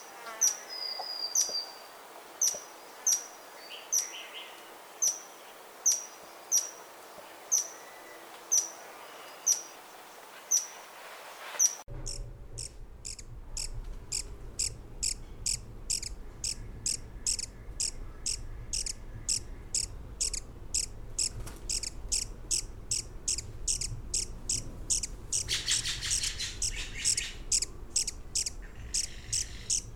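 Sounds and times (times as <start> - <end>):
birds chirping: 0.0 - 29.9.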